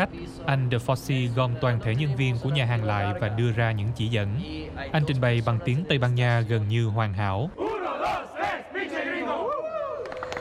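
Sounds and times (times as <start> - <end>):
speech: 0.0 - 8.3
group chanting a slogan together: 7.6 - 9.6.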